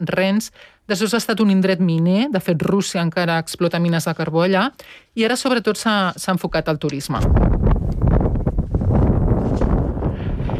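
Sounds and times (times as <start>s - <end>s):
speech: 0.0s - 7.5s
strong wind gusts on Svalbard, Arctic archipelago: 7.2s - 10.5s.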